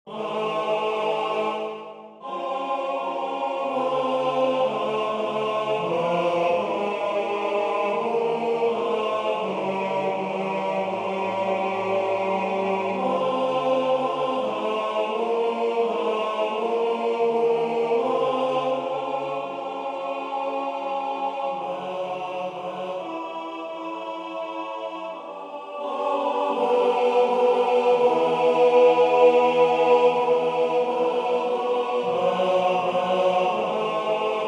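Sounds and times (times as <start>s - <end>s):
tenor chanting: 0.1s - 34.4s.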